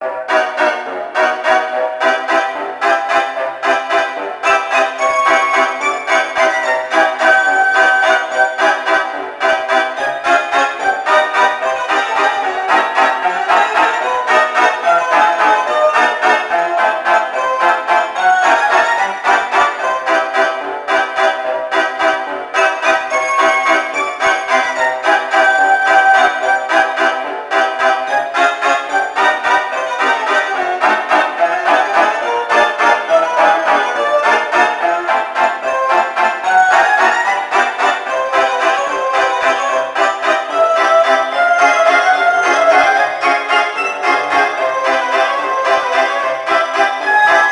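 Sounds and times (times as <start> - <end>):
carnival ambience: 0.0 - 47.5.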